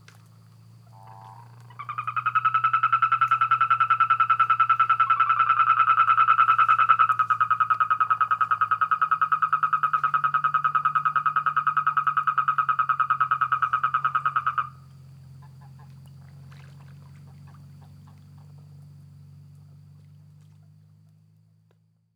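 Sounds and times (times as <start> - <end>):
low hum: 0.0 - 21.2
frog or toad pulsed trill: 0.9 - 14.8.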